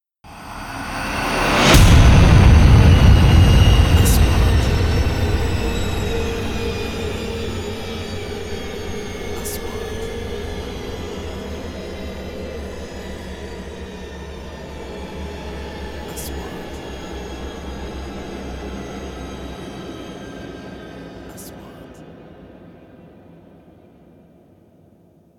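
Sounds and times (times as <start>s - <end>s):
3D trailer sound effects: 0.2s - 22.0s.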